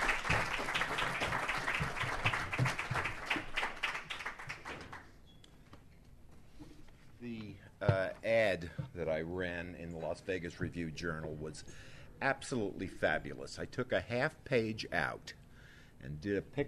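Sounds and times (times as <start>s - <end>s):
audience applause welcoming a speaker: 0.0s - 5.0s
speech: 8.5s - 15.4s, 16.0s - 16.6s.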